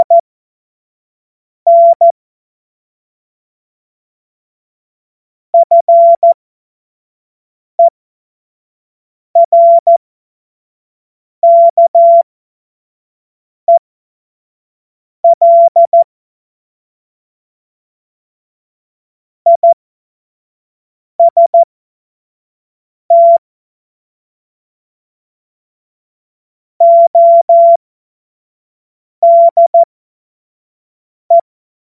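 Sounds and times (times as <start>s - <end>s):
CW Morse code beeps: 0.0s - 0.2s, 1.7s - 2.1s, 5.6s - 6.4s, 9.4s - 10.0s, 11.4s - 12.2s, 15.2s - 16.1s, 19.5s - 19.8s, 21.2s - 21.6s, 23.1s - 23.4s, 26.8s - 27.8s, 29.2s - 29.9s.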